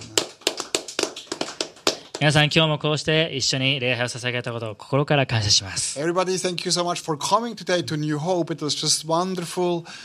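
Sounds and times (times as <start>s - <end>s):
audience applause: 0.0s - 2.3s
speech: 2.2s - 10.0s.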